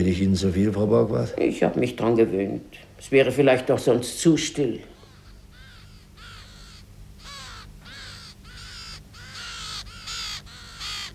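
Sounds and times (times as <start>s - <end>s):
speech: 0.0s - 4.9s
ravens cawing: 4.8s - 11.1s.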